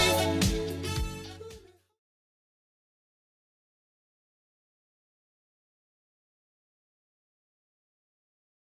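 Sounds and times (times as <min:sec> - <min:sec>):
80s-style beat at 110 bpm: 0:00.0 - 0:01.8.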